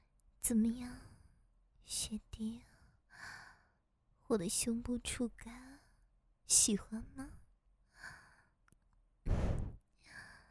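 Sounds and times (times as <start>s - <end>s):
speech: 0.4s - 1.1s, 1.8s - 3.4s, 4.3s - 5.7s, 6.5s - 7.4s
woman breathing rapidly: 2.8s - 3.8s, 7.9s - 8.6s, 9.3s - 10.4s.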